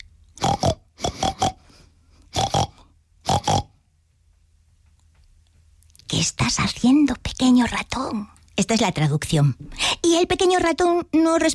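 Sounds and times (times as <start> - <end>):
person imitating pig grunts, oinks and squeals: 0.4 - 1.6, 2.3 - 3.8
speech: 6.2 - 11.5.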